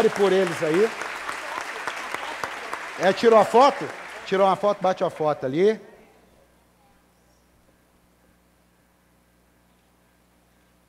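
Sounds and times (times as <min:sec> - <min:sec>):
speech: 0:00.0 - 0:01.1, 0:03.0 - 0:05.9
crowd applauding: 0:00.0 - 0:05.6.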